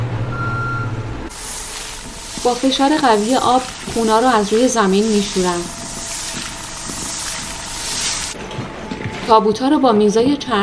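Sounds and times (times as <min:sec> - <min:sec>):
forklift reversing beeps: 0:00.3 - 0:01.1
speech: 0:02.4 - 0:05.8, 0:09.3 - 0:10.6.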